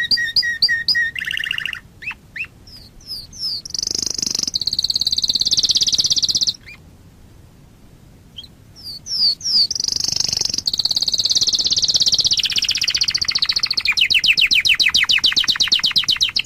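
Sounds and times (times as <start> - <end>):
Waterslager canary song: 0.0 - 6.9, 8.3 - 16.4.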